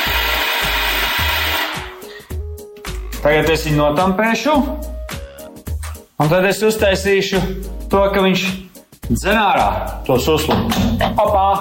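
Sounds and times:
electric coffee grinder grinding coffee beans: 0:00.0 - 0:02.0
speech: 0:03.2 - 0:04.9, 0:06.2 - 0:11.5.

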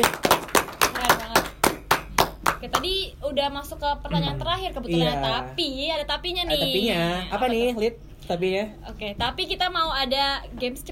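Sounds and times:
speech: 0:00.0 - 0:00.2, 0:02.6 - 0:10.9
small group clapping: 0:00.0 - 0:03.0.

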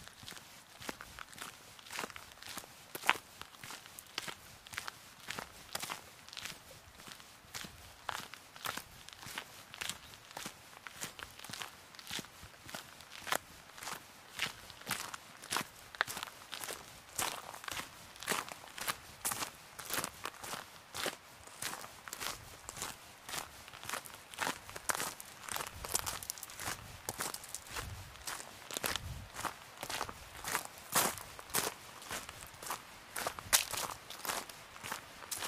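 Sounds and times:
footsteps crunching on an autumn mountain: 0:00.1 - 0:35.4.

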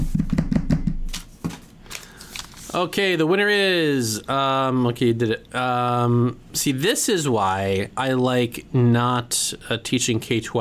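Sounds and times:
drum roll tapped by hand: 0:00.0 - 0:01.1
speech: 0:02.7 - 0:10.5.

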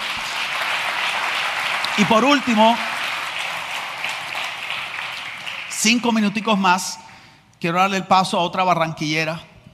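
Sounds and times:
audience applause: 0:00.0 - 0:06.2
speech: 0:02.0 - 0:02.9, 0:05.8 - 0:07.0, 0:07.6 - 0:09.5.

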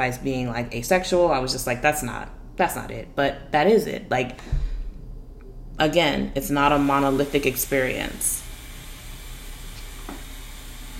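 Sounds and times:
speech: 0:00.0 - 0:04.6, 0:05.8 - 0:08.4
refrigerator humming: 0:05.2 - 0:10.9
faint hiss: 0:06.4 - 0:10.9.

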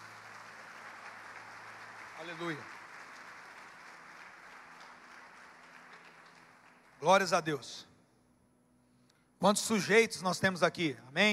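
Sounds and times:
audience applauding: 0:00.0 - 0:07.6
speech: 0:02.2 - 0:02.8, 0:07.0 - 0:07.9, 0:09.4 - 0:11.3.

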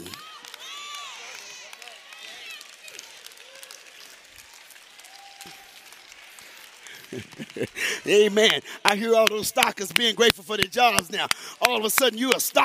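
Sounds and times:
whoops and shouted cheers: 0:00.0 - 0:08.2
large crowd applauding: 0:00.0 - 0:12.6
laughter: 0:06.4 - 0:09.9
speech: 0:07.1 - 0:12.6.

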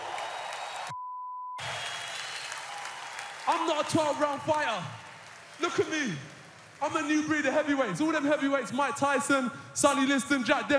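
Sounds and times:
crowd applause and cheering: 0:00.0 - 0:01.0, 0:01.6 - 0:08.0
speech: 0:03.5 - 0:05.0, 0:05.6 - 0:10.7.

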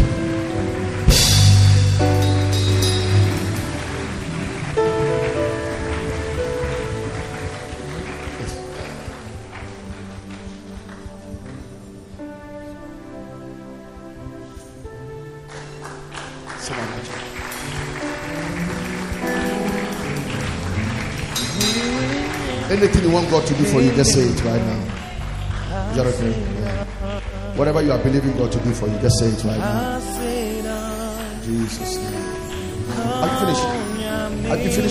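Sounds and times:
audience clapping hands: 0:00.0 - 0:12.3, 0:15.0 - 0:34.9
loud sustained music with held chords and bass: 0:00.0 - 0:14.4, 0:15.1 - 0:34.9
speech: 0:23.2 - 0:24.8, 0:26.0 - 0:26.5, 0:27.6 - 0:30.2, 0:31.5 - 0:32.2, 0:33.0 - 0:34.9.

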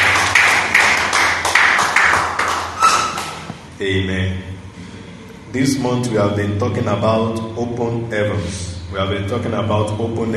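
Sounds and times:
audience clapping: 0:00.0 - 0:03.5
speech: 0:03.8 - 0:04.6, 0:05.5 - 0:10.3.

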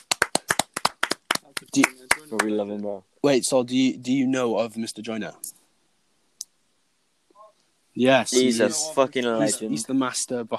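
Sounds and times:
hands clapping: 0:00.0 - 0:02.6
speech: 0:01.7 - 0:05.6, 0:08.0 - 0:10.5.

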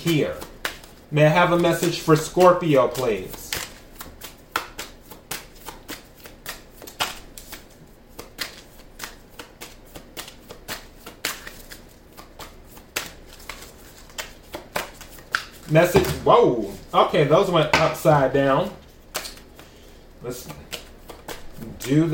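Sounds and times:
speech: 0:00.0 - 0:00.5, 0:01.1 - 0:03.4, 0:15.7 - 0:18.8, 0:20.2 - 0:20.6, 0:21.8 - 0:22.1
tarot cards being shuffled: 0:00.0 - 0:22.1.

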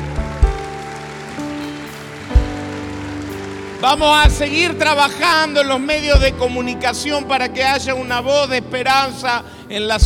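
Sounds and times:
crowd audience applause: 0:00.0 - 0:06.2
speech: 0:03.8 - 0:10.0.

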